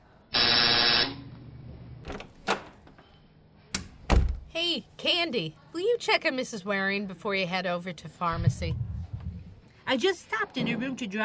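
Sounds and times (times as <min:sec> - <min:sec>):
door release buzzer: 0:00.4 - 0:01.2
door clicks and thuds: 0:03.8 - 0:04.5
speech: 0:04.6 - 0:08.8, 0:09.9 - 0:11.2.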